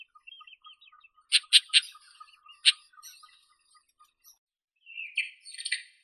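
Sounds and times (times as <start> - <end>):
isabelline shrike Lanius isabellinus: 0.0 - 3.8.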